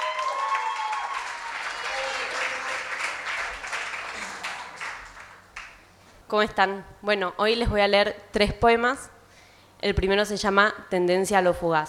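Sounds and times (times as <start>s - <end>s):
audience applause welcoming a poet to the stage at a poetry reading: 0.0s - 5.8s
speech: 6.3s - 9.1s, 9.8s - 11.8s.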